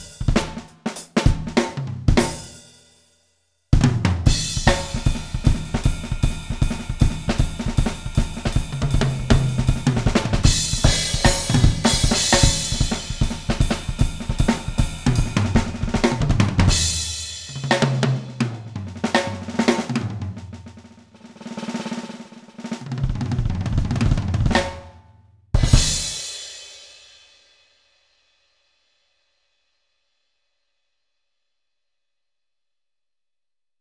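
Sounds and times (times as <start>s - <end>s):
SD-90 MIDI drums: 0.0s - 2.7s, 3.7s - 25.0s, 25.6s - 26.6s.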